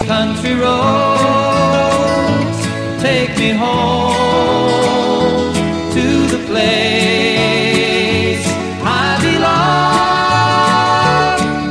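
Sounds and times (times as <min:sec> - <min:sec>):
country music: 0:00.0 - 0:11.6.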